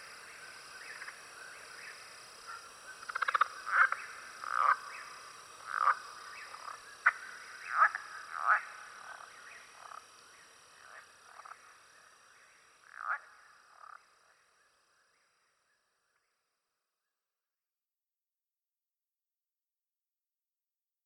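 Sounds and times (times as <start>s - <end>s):
Southern leopard frog calling: 0.0s - 14.5s
Southern toad calling: 1.8s - 10.0s.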